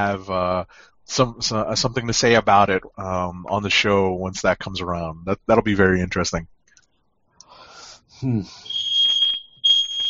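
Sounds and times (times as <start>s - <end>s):
speech: 0.0s - 6.6s, 8.2s - 8.7s
smoke alarm beeping: 8.6s - 10.0s.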